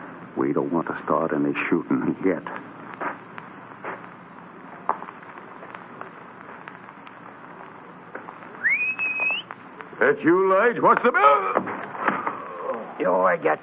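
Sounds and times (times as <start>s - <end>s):
speech: 0.4s - 2.8s, 10.0s - 11.7s, 13.0s - 13.6s
loud human whistle: 8.6s - 9.5s.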